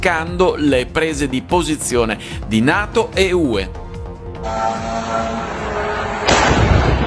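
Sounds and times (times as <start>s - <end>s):
speech: 0.0s - 3.8s, 4.4s - 5.6s
Russian drone crashing into residential building roof in Romania: 5.4s - 7.0s.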